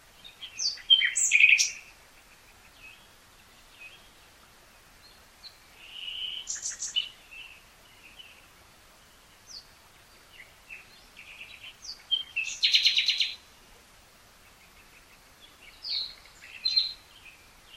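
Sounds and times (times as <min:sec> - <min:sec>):
Common nightingale Luscinia megarhynchos singing: 0:00.1 - 0:13.5, 0:14.4 - 0:17.7.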